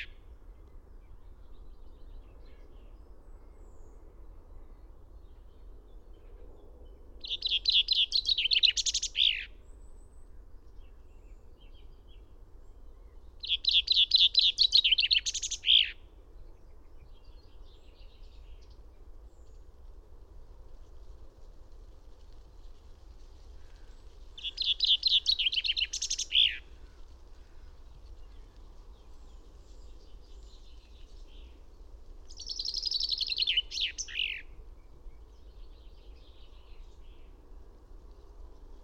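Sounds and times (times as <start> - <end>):
finch singing a trilled phrase: 7.2 - 9.5, 13.4 - 16.0, 24.4 - 26.7, 32.3 - 34.5
faint bird twittering: 7.2 - 10.1, 13.0 - 19.6, 23.6 - 31.6, 32.3 - 37.4.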